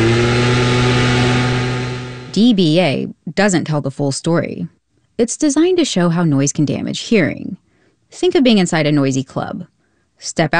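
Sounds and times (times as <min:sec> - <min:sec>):
gas-powered leaf blower running: 0:00.0 - 0:02.4
speech: 0:02.4 - 0:10.5.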